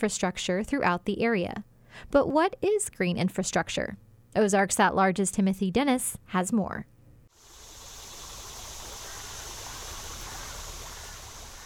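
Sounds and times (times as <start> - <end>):
speech: 0.0 - 6.9
Skull Creek in Midtown Fayetteville flowing after a late summer shower: 7.3 - 11.6.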